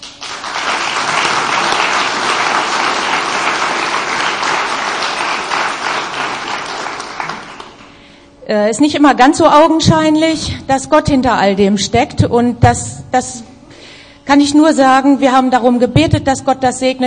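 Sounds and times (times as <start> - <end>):
crowd applause: 0.0 - 8.0
speech: 8.5 - 13.5, 14.3 - 17.0.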